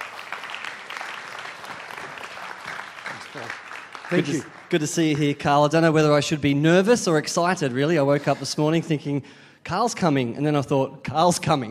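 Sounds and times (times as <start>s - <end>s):
audience applause welcoming a speaker at a Baptist church: 0.0s - 5.2s
speech: 3.4s - 11.6s.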